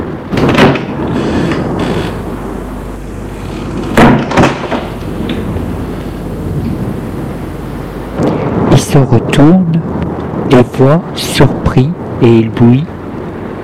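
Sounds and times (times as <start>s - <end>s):
door opening: 0.3s - 6.8s
speech: 8.9s - 13.0s.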